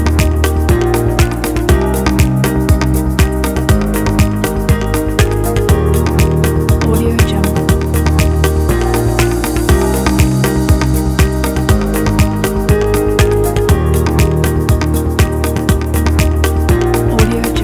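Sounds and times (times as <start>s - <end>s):
corporate upbeat drum kit: 0.0s - 17.6s.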